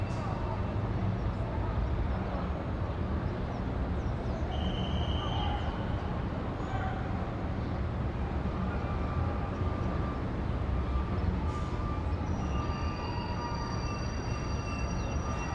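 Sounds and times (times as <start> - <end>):
cars on busy streets in downtown LA: 0.0 - 15.5
sirens in downtown LA Pershing Square: 8.7 - 15.5.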